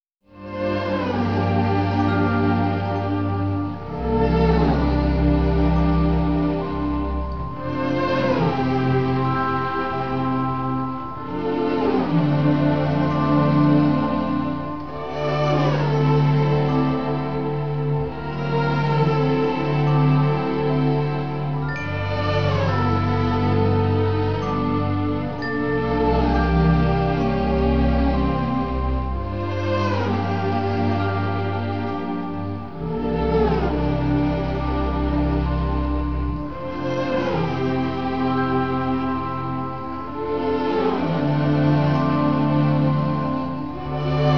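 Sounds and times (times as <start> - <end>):
instrumental music: 0.3 - 44.3.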